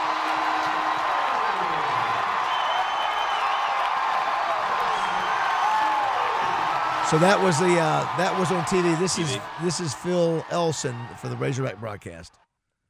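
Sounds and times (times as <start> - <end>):
stadium crowd cheering after walk-off home run: 0.0 - 12.3
speech: 7.1 - 12.4.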